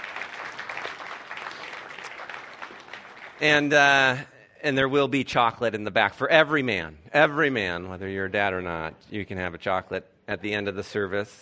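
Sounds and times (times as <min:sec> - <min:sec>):
audience clapping: 0:00.0 - 0:04.0
speech: 0:03.4 - 0:11.4.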